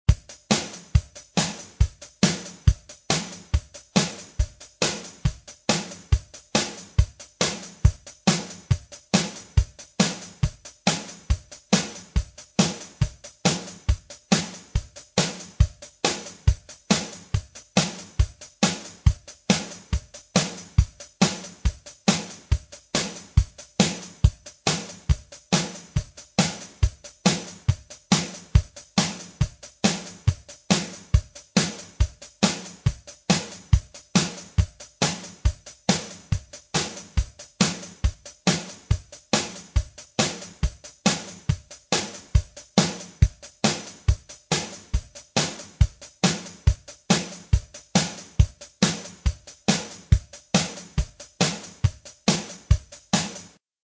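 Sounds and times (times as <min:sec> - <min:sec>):
drums: 0:00.0 - 0:53.8.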